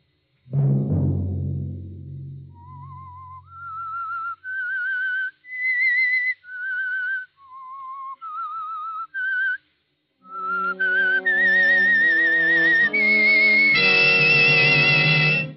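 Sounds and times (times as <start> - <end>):
swelling orchestral chords: 0.5 - 3.3, 10.4 - 15.5
deep low chord: 0.5 - 3.5
eerie whistled theme melody: 2.5 - 9.6, 10.2 - 15.5.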